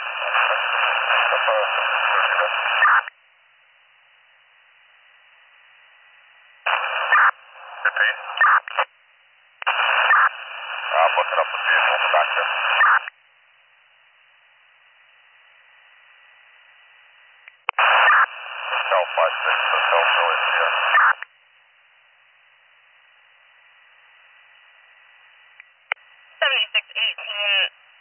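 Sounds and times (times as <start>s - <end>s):
police radio static: 0.0s - 3.1s, 6.7s - 8.9s, 9.7s - 13.1s, 17.8s - 21.2s, 26.4s - 27.7s
speech: 0.4s - 3.1s.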